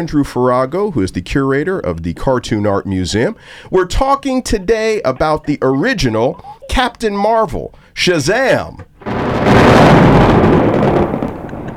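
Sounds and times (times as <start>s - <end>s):
speech: 0.0s - 8.9s
thunderclap sound effect: 9.0s - 11.7s.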